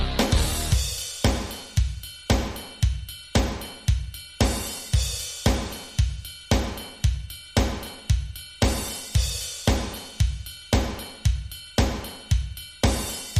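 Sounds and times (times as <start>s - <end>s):
bass: 0.0s - 1.0s
drums: 0.0s - 13.3s.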